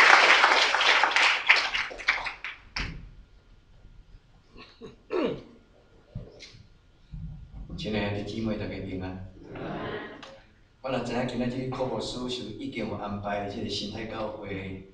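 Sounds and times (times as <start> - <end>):
audience applause: 0.0 - 2.7
soft thumps and shuffling: 6.1 - 8.0
speech: 7.8 - 9.7, 10.9 - 14.9.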